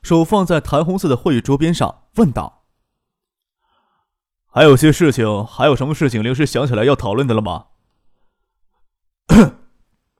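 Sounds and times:
speech: 0.1 - 2.6, 4.5 - 7.7, 9.3 - 9.6
light cough: 9.3 - 9.8.

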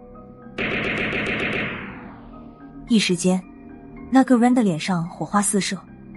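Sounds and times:
assault rifle burst of gunfire: 0.6 - 2.1
speech: 2.9 - 3.5, 4.1 - 5.9.

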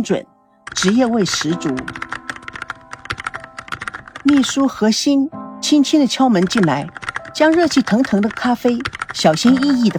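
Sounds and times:
speech: 0.0 - 2.1, 4.2 - 9.9
typing on a keyboard: 0.6 - 4.8, 6.2 - 9.9.

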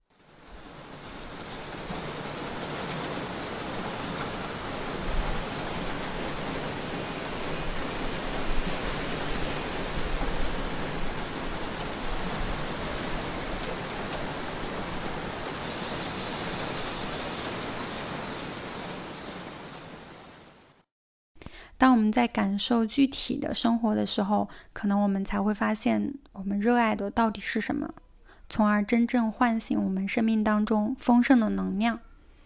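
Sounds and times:
heavy rain: 0.1 - 20.9
speech: 21.8 - 32.1.

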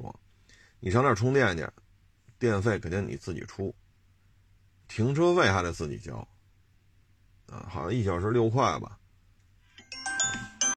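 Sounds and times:
speech: 0.8 - 1.8, 2.4 - 3.8, 4.9 - 6.3, 7.5 - 9.0
phone ringtone: 9.8 - 10.7.

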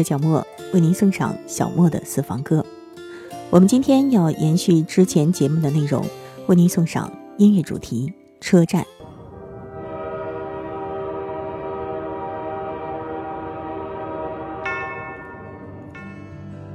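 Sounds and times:
speech: 0.0 - 2.8, 3.5 - 9.0
train rumbling: 9.0 - 16.1.

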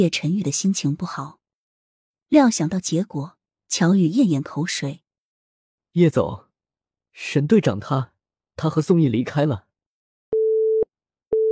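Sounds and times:
speech: 0.0 - 1.4, 2.3 - 5.0, 6.0 - 6.5, 7.2 - 9.7
phone busy tone after hang-up: 10.4 - 11.4.

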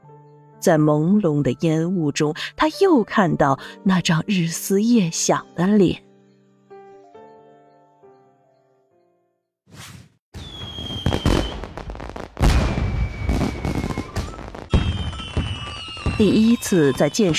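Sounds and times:
speech: 0.6 - 6.1, 16.2 - 17.3
firecrackers exploding continuously: 10.4 - 17.3.

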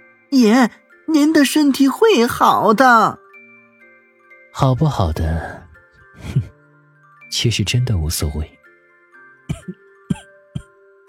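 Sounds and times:
speech: 0.3 - 3.2, 4.6 - 5.6, 6.2 - 6.5, 7.3 - 8.6
low cough: 9.4 - 10.8.

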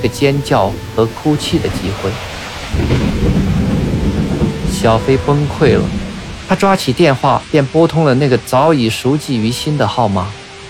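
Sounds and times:
speech: 0.0 - 3.4, 4.8 - 10.4
deep loud rumble of thunder: 0.0 - 8.6
heavy rain pouring down: 0.0 - 10.6.

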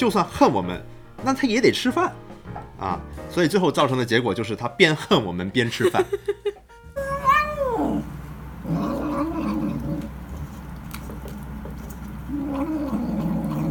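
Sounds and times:
speech: 0.0 - 2.2, 2.8 - 6.4
laughter: 5.7 - 6.7
angry orange cat yowling and growling: 7.0 - 10.1, 12.2 - 13.7.

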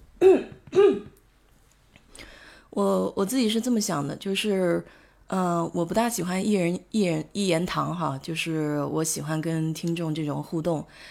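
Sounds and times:
person with a dry morning throat clearing it: 0.2 - 1.2
speech: 2.8 - 11.0.

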